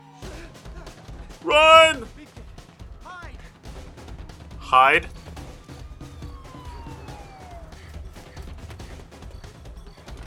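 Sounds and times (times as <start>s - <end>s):
police car siren: 0.0s - 2.0s, 4.6s - 10.2s
speech: 1.4s - 2.1s, 4.7s - 5.2s.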